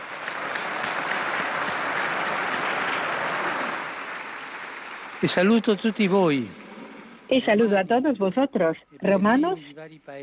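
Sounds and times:
crowd applause: 0:00.0 - 0:07.3
speech: 0:05.2 - 0:06.6, 0:07.3 - 0:10.2.

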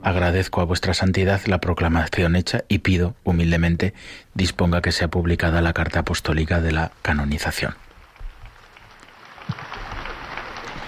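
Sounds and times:
speech: 0:00.0 - 0:07.9
crowd applause in a public square: 0:08.0 - 0:10.8.

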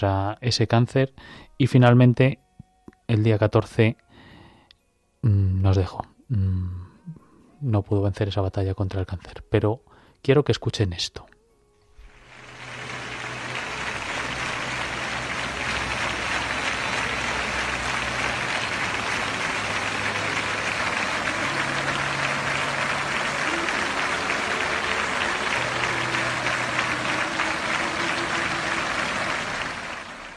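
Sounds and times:
speech: 0:00.0 - 0:02.4, 0:03.1 - 0:04.0, 0:05.2 - 0:11.3
spontaneous crowd applause tribute: 0:12.0 - 0:30.3.

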